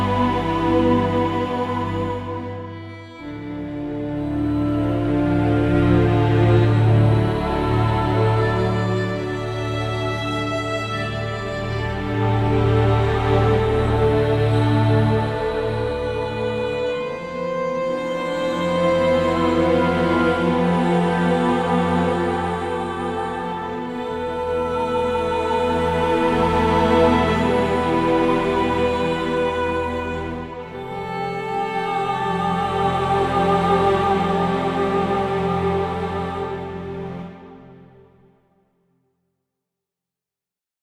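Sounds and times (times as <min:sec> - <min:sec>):
orchestral ambient music: 0:00.0 - 0:38.4.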